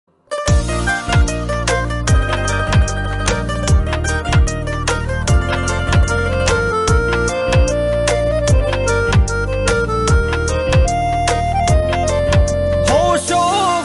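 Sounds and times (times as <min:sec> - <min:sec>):
instrumental music: 0:00.1 - 0:13.8.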